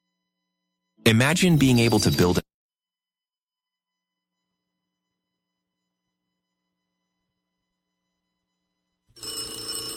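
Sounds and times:
speech: 0:01.0 - 0:02.4
telephone bell ringing: 0:09.1 - 0:09.9.

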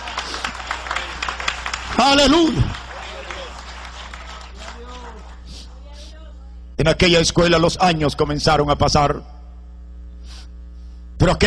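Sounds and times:
crowd applauding: 0:00.0 - 0:05.9
speech: 0:02.0 - 0:02.8, 0:06.8 - 0:09.4, 0:11.2 - 0:11.4.

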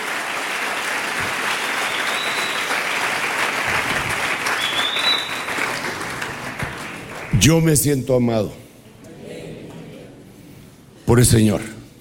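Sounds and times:
sustained audience applause: 0:00.0 - 0:07.6
high whistles or cheers: 0:01.4 - 0:03.2, 0:04.4 - 0:05.8
speech: 0:07.4 - 0:08.6, 0:11.1 - 0:11.8.

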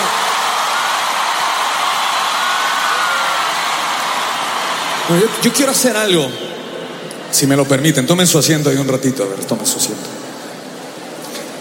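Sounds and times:
loud audience applause: 0:00.0 - 0:06.4
speech: 0:05.1 - 0:06.5, 0:07.3 - 0:10.2.

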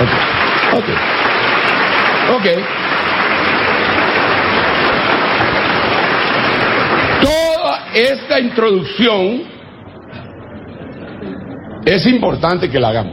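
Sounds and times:
audience applause: 0:00.0 - 0:08.8
speech: 0:00.8 - 0:01.2, 0:02.3 - 0:02.8, 0:08.0 - 0:09.6, 0:11.9 - 0:13.1.

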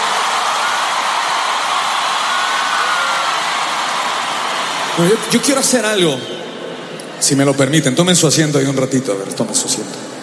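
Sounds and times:
audience applause: 0:00.0 - 0:05.8
speech: 0:05.0 - 0:06.4, 0:07.2 - 0:10.2.

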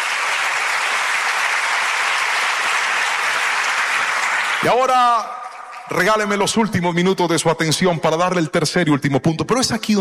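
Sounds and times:
audience applause: 0:00.0 - 0:06.6
speech: 0:04.6 - 0:09.9.

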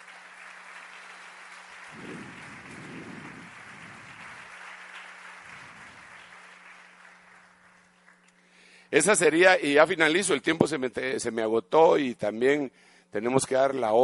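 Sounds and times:
audience applause: 0:00.0 - 0:08.3
speech: 0:08.9 - 0:14.0.

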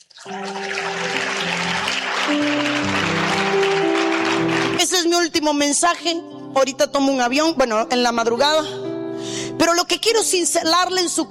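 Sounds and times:
speech: 0:00.2 - 0:00.8, 0:05.0 - 0:08.8, 0:09.5 - 0:11.2
audience applause: 0:00.2 - 0:05.0.

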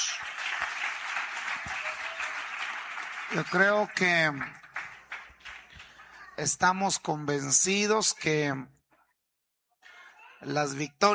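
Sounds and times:
audience applause: 0:00.0 - 0:06.5
speech: 0:03.3 - 0:04.6, 0:06.4 - 0:08.8, 0:10.4 - 0:11.1.

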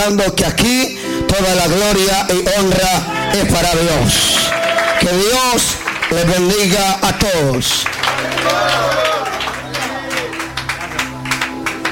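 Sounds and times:
speech: 0:00.0 - 0:09.2
group clapping: 0:04.1 - 0:11.9.

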